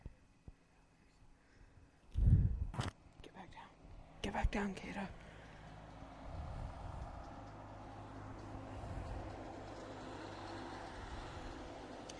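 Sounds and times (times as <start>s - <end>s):
car traffic passing: 3.0s - 12.1s
speech: 4.4s - 5.2s.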